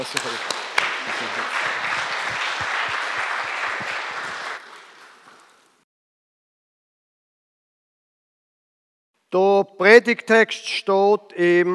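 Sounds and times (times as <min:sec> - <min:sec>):
speech: 0:00.0 - 0:01.7, 0:09.3 - 0:11.7
audience applause: 0:00.0 - 0:05.8.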